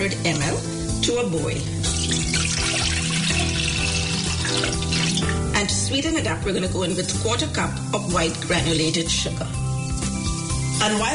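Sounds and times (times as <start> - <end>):
speech: 0.1 - 3.8, 5.9 - 9.6, 10.8 - 11.1
milk poured into a pan over medium heat: 1.8 - 5.4.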